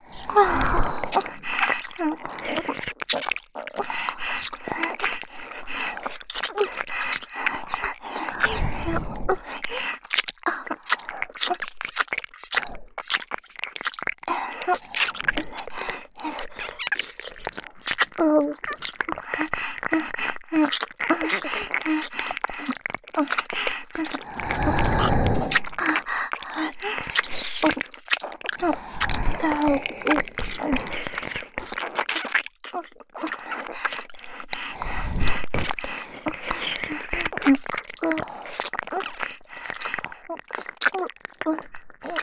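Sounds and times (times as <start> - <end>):
ear licking in both ears: 0.0 - 42.2.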